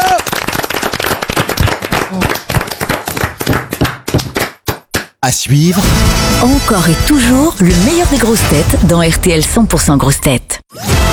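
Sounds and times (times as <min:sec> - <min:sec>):
audience applause: 0:00.0 - 0:04.6
speech: 0:05.3 - 0:10.4.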